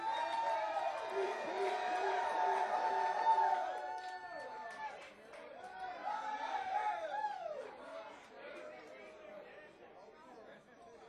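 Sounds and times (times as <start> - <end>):
audience applause and cheering: 0.0 - 7.7.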